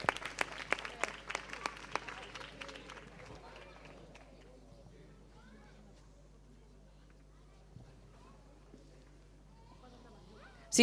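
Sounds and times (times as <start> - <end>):
audience applause: 0.0 - 4.5.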